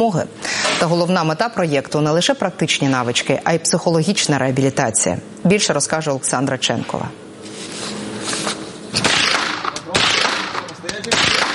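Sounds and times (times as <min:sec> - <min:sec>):
speech: 0:00.0 - 0:07.3
loud gunshots at shooting practice: 0:09.0 - 0:11.5.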